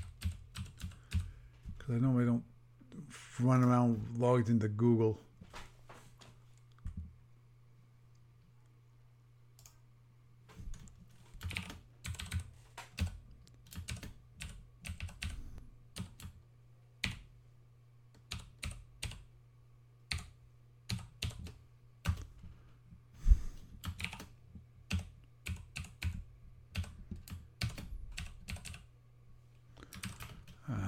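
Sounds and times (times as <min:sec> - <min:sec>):
typing a Gmail address on a computer keyboard to log into Google: 0:00.0 - 0:01.3, 0:10.7 - 0:15.4, 0:16.0 - 0:16.4, 0:18.2 - 0:19.3, 0:20.1 - 0:22.3, 0:23.8 - 0:28.9, 0:29.9 - 0:30.6
speech: 0:01.9 - 0:05.3.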